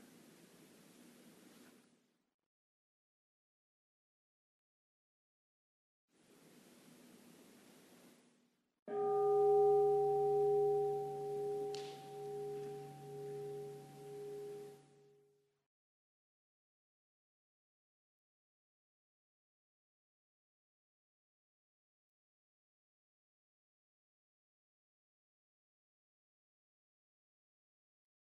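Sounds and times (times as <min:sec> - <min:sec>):
bell ringing: 0:08.9 - 0:14.8.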